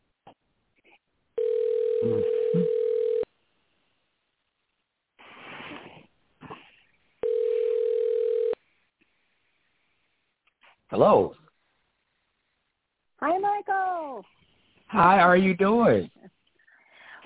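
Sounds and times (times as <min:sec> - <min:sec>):
telephone dial tone during a call: 0:01.4 - 0:03.3, 0:07.2 - 0:08.6
speech: 0:11.0 - 0:11.4, 0:14.9 - 0:16.2.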